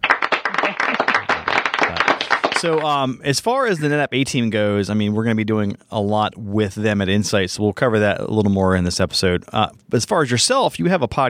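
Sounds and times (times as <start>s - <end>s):
applause sound effect: 0.0s - 3.0s
speech: 0.7s - 1.3s, 2.6s - 11.2s.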